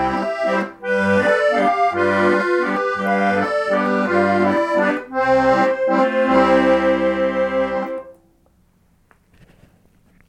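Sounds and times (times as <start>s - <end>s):
pletvals waltz tune: 0.0s - 8.2s.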